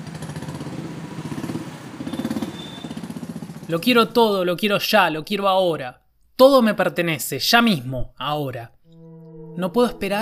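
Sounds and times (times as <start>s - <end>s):
city street noise: 0.0s - 3.9s
speech: 3.7s - 8.8s, 9.6s - 10.2s.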